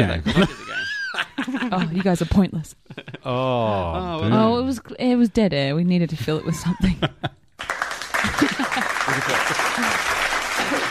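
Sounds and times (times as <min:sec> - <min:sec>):
laughter: 0:00.0 - 0:04.0, 0:06.6 - 0:07.4, 0:08.1 - 0:10.9
speech: 0:00.0 - 0:07.7, 0:09.1 - 0:10.9
hands clapping: 0:07.6 - 0:10.9.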